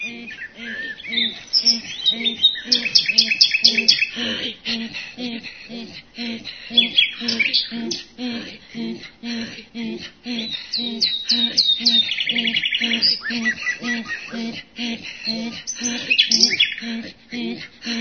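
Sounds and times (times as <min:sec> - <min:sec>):
common nightingale singing: 0:00.0 - 0:04.6, 0:06.7 - 0:08.2, 0:10.3 - 0:14.6, 0:15.2 - 0:17.0
laughter: 0:00.0 - 0:17.9.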